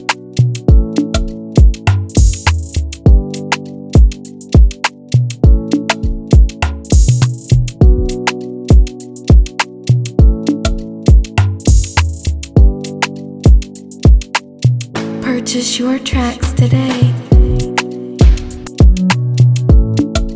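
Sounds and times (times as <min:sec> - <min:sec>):
instrumental beat at 101 bpm in B minor: 0:00.0 - 0:15.2, 0:16.4 - 0:20.3.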